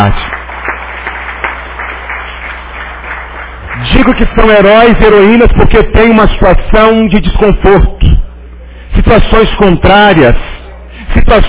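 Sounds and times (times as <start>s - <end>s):
speech: 0.0s - 0.3s, 4.1s - 8.2s, 9.1s - 10.5s, 11.1s - 11.4s
audience applause: 0.0s - 5.0s.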